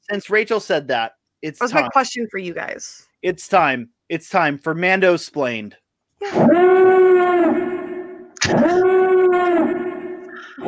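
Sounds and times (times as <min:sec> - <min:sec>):
speech: 0:00.1 - 0:07.1
klaxon alarm blasts: 0:06.3 - 0:10.6.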